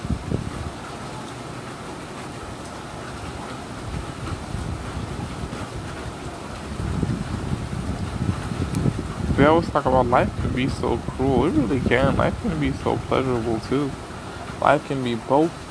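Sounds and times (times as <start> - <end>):
wind blowing into the microphone: 0.0 - 0.7, 3.8 - 14.4
speech: 9.4 - 14.0, 14.6 - 15.6.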